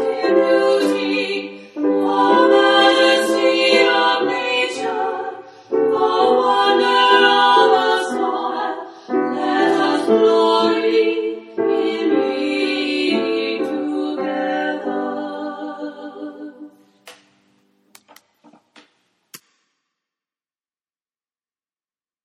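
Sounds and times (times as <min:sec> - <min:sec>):
soprano alto and tenor choir singing: 0:00.0 - 0:16.8
piano: 0:00.0 - 0:17.6.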